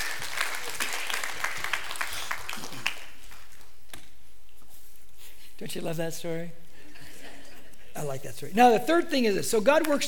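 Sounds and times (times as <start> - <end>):
audience applause: 0.0 - 3.6
speech: 5.6 - 6.6, 8.0 - 10.0.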